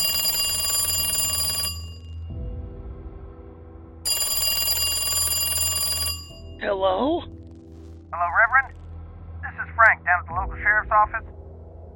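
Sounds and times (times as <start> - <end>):
house phone ringing: 0.0 - 2.2, 4.1 - 6.6
speech: 6.6 - 7.4, 10.1 - 11.3.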